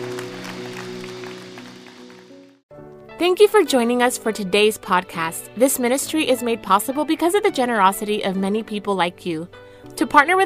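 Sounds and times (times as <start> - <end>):
audience clapping hands: 0.0 - 2.6
speech: 3.2 - 10.4.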